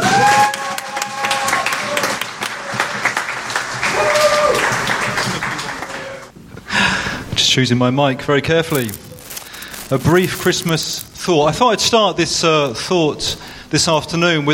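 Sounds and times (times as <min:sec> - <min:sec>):
audience clapping at an afternoon Christmas service: 0:00.0 - 0:06.3
speech: 0:07.6 - 0:09.1, 0:09.9 - 0:14.5.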